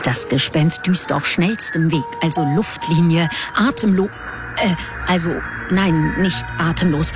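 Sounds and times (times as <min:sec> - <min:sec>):
speech: 0:00.1 - 0:07.1
electronic alarm beeping: 0:02.3 - 0:07.1.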